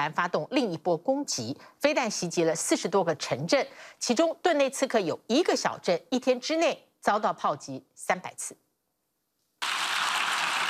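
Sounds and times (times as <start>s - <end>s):
speech: 0.0s - 8.6s
applause in UN General Assembly hall: 9.6s - 10.6s.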